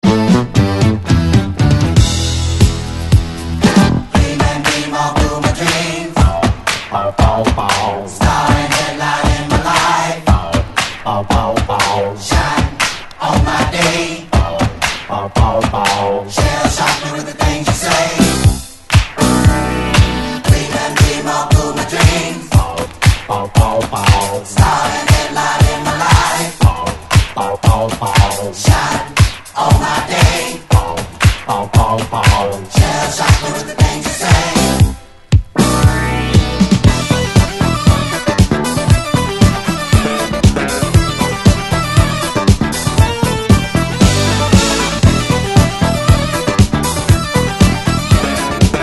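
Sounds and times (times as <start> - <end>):
disco music: 0.0 - 48.8.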